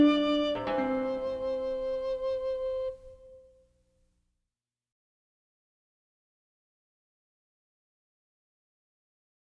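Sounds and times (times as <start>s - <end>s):
instrumental music: 0.0s - 3.5s.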